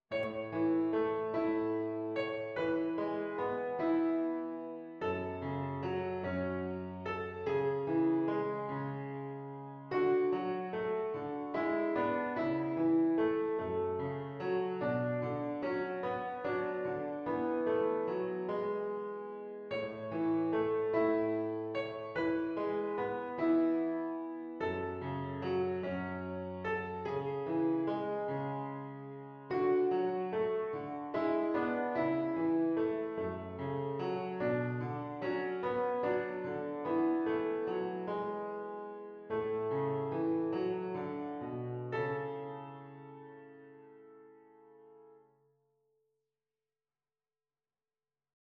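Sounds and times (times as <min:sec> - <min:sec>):
simple piano arrangement: 0:00.0 - 0:45.4.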